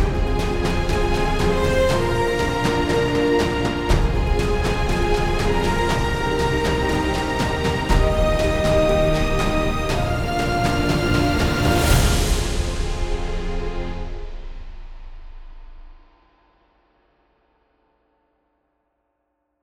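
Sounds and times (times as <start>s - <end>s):
blockbuster video game music: 0.0s - 14.2s.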